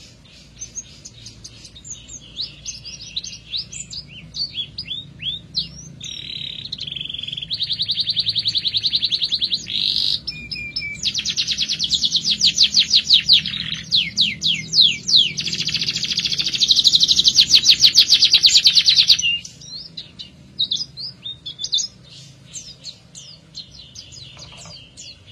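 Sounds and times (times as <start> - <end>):
canary singing: 0.0 - 25.3
low background hum: 0.0 - 25.3.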